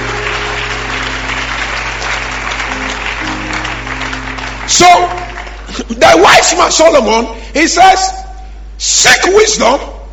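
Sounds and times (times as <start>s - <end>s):
crowd applause: 0.0s - 6.3s
low steady hum: 0.0s - 10.1s
speech: 4.8s - 5.2s, 5.8s - 8.2s, 8.8s - 9.9s.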